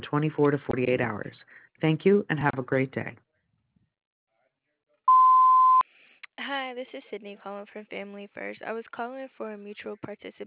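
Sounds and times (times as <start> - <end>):
speech: 0.1 - 3.2, 6.8 - 10.4
voicemail tone beep: 5.1 - 5.8.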